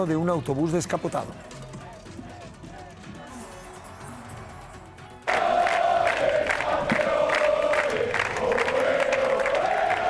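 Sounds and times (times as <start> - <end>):
speech: 0.0 - 1.6
huge street crowd cheering and shouting for champions: 5.3 - 10.0.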